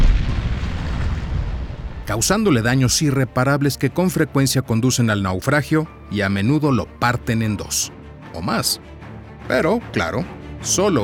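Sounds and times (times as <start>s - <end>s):
torpedo explosion underwater: 0.0s - 3.0s
speech: 2.1s - 11.0s.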